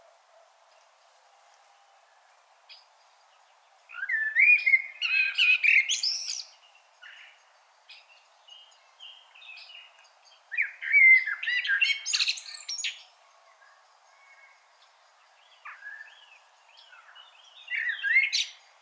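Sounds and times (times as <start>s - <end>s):
common blackbird Turdus merula warbling with scratchy twitters: 3.9s - 18.8s.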